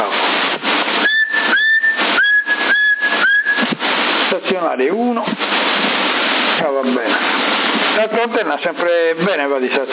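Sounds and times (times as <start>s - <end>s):
thin crackly CB radio hiss: 0.0s - 9.9s
person whistling into a CB radio microphone: 1.0s - 3.7s
speech: 8.0s - 9.9s.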